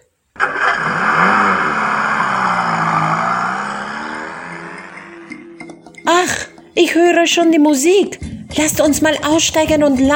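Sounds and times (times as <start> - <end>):
car driving off: 0.4 - 6.7
speech: 6.9 - 10.1.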